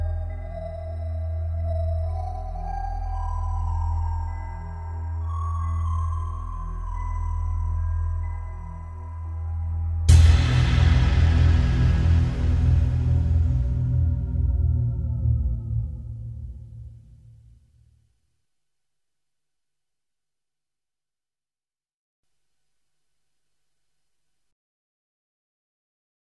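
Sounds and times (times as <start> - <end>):
music: 0.0 - 18.2.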